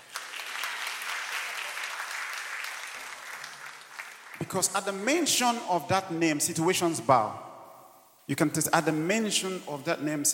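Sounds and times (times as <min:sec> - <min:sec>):
audience clapping: 0:00.0 - 0:05.0
speech: 0:04.4 - 0:07.5, 0:08.3 - 0:10.3.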